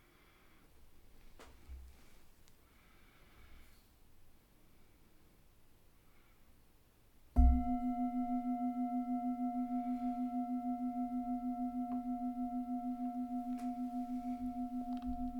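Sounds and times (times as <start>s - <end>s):
meditation gong ringing: 7.4s - 15.3s.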